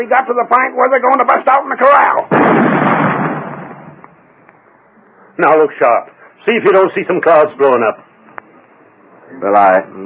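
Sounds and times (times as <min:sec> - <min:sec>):
speech: 0:00.0 - 0:03.0, 0:05.4 - 0:08.1, 0:09.3 - 0:10.0
explosion of a lit fuse charge fired to make rain: 0:02.3 - 0:04.2.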